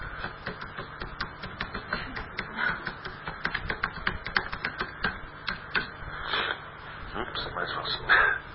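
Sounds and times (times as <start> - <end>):
typing on a computer keyboard while editing a Wikipedia page: 0.2 - 5.6
person talking: 7.1 - 8.4.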